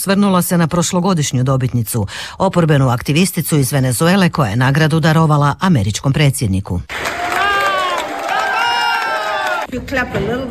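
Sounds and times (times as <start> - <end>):
speech: 0.0 - 7.2, 9.7 - 10.4
colleagues clapping for a prize winner: 6.9 - 9.7
colleagues whooping for a prize winner: 7.0 - 9.7.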